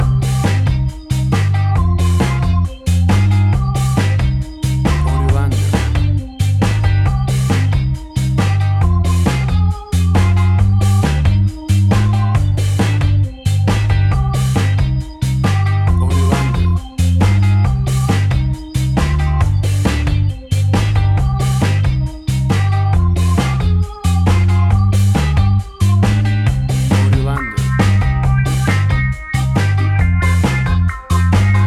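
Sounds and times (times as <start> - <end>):
cool ska reggae Caribbean music: 0.0 - 31.6.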